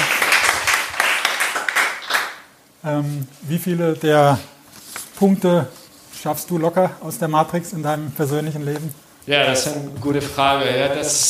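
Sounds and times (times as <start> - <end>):
audience applause: 0.0 - 2.5
speech: 2.8 - 4.5, 5.2 - 11.2.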